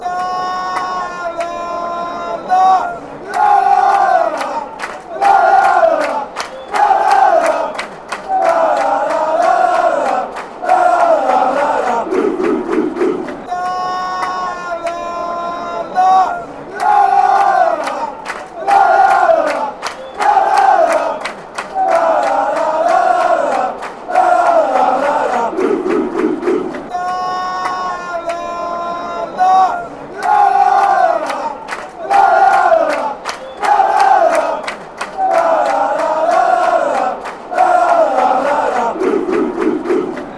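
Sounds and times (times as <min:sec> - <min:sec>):
fans chanting: 0:00.0 - 0:40.3.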